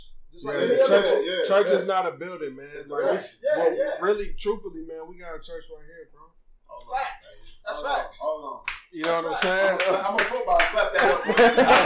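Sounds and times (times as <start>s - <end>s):
speech: 0.3s - 11.8s
laughter: 0.5s - 1.9s, 9.4s - 11.8s
sharp hand clap: 8.6s - 11.8s.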